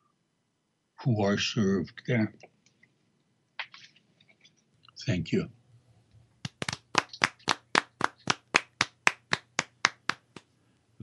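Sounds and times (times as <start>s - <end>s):
speech: 1.0s - 2.5s, 5.0s - 5.6s
clapping after a reading of a letter: 6.4s - 10.5s.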